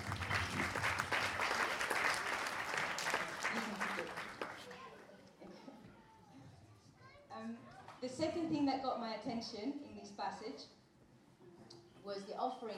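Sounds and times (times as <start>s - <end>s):
audience applause: 0.0s - 5.0s
speech: 8.1s - 10.8s, 12.0s - 12.7s.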